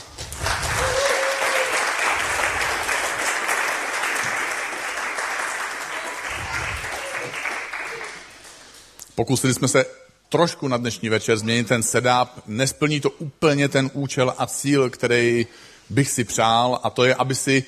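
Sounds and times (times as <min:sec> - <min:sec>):
audience applause: 0:00.0 - 0:08.8
speech: 0:09.2 - 0:17.6.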